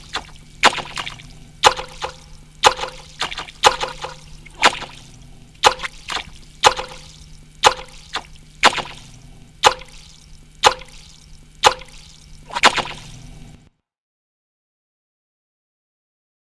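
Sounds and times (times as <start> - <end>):
percussion music: 1.6 - 4.9, 5.6 - 9.0, 9.6 - 12.8.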